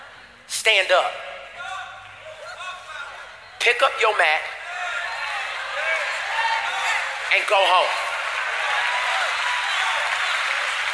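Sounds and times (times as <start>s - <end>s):
speech: 0.6s - 1.3s, 3.6s - 4.6s, 7.3s - 8.0s
audience clapping: 5.6s - 10.9s.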